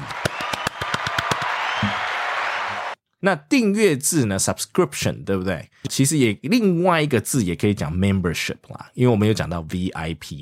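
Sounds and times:
applause of many hands clapping: 0:00.0 - 0:03.0
speech: 0:03.2 - 0:10.4.

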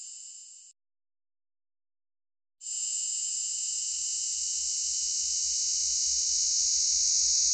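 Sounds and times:
cicada buzz: 0:02.7 - 0:07.5.

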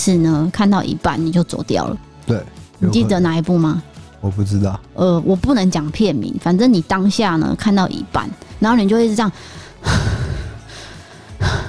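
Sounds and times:
speech: 0:00.0 - 0:10.2
person imitating heavy breathing: 0:09.4 - 0:11.6.

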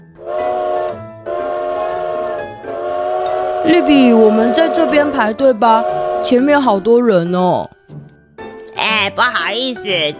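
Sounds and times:
steam train whistle: 0:00.1 - 0:06.7
speech: 0:03.6 - 0:07.8, 0:09.0 - 0:10.1.

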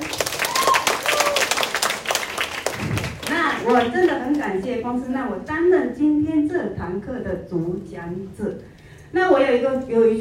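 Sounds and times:
crowd applauding: 0:00.0 - 0:04.1
speech: 0:03.7 - 0:10.1.

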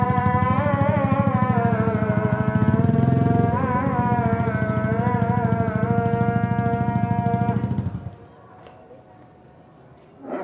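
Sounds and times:
call to evening prayer in Surabaya, East Java: 0:00.0 - 0:08.2
quiet street hum in Surabaya: 0:00.0 - 0:10.4.

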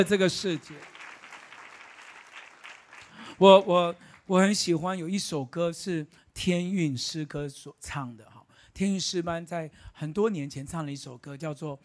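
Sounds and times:
speech: 0:00.0 - 0:01.0, 0:03.4 - 0:11.8
audience clapping: 0:00.0 - 0:04.5.

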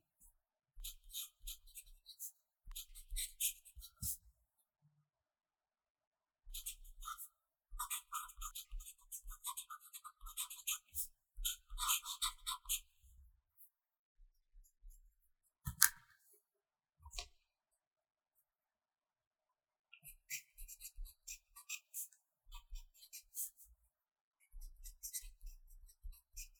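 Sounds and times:
pencil writing: 0:00.9 - 0:04.2, 0:06.5 - 0:13.0, 0:20.1 - 0:23.7, 0:24.5 - 0:26.5.

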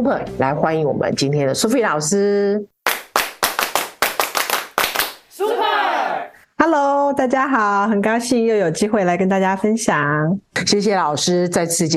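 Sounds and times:
speech: 0:00.0 - 0:02.7, 0:06.6 - 0:11.9
audience applause: 0:02.9 - 0:06.3.

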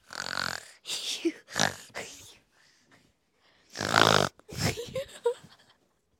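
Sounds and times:
loud snoring: 0:00.0 - 0:00.8, 0:01.5 - 0:02.0, 0:03.7 - 0:04.4.

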